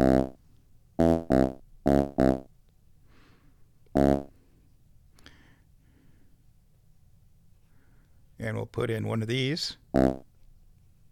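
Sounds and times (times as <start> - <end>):
buzzy bass notes from a pocket synthesizer: 0.0 - 0.4, 1.0 - 2.5, 4.0 - 4.3, 10.0 - 10.2
speech: 8.8 - 10.3.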